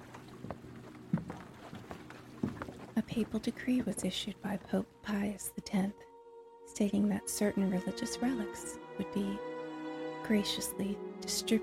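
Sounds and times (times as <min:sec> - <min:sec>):
worn wooden floorboards creaking: 0:00.0 - 0:03.4
speech: 0:03.0 - 0:06.1, 0:06.8 - 0:09.5, 0:10.2 - 0:11.6.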